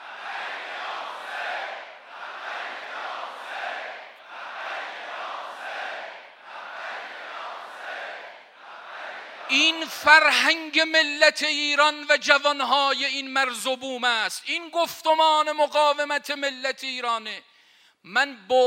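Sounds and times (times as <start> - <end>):
huge crowd chanting at a shrine: 0.0 - 10.3
speech: 9.5 - 18.6.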